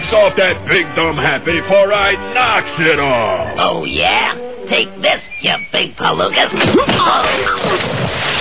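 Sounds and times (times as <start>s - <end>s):
speech: 0.1s - 8.3s
water splash: 6.5s - 8.3s.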